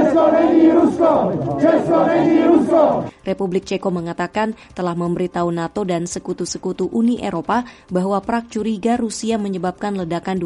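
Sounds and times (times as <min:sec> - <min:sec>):
crowd of demonstrators chanting: 0:00.0 - 0:03.1
speech: 0:00.2 - 0:10.4.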